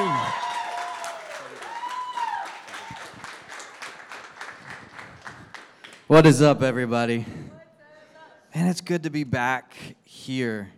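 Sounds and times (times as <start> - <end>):
people whooping: 0.0 - 3.4
church audience applause welcoming a speaker to the stage: 0.0 - 6.1
speech: 6.1 - 7.5, 8.6 - 10.7.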